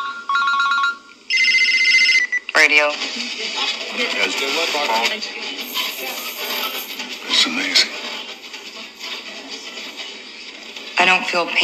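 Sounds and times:
telephone ringing: 0:00.0 - 0:02.9
speech: 0:02.6 - 0:06.2, 0:07.4 - 0:08.1, 0:11.0 - 0:11.6.

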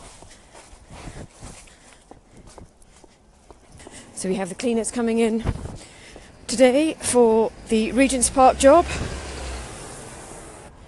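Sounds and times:
footsteps on fallen leaves: 0:00.0 - 0:03.2
speech: 0:04.2 - 0:05.7, 0:06.5 - 0:09.2.

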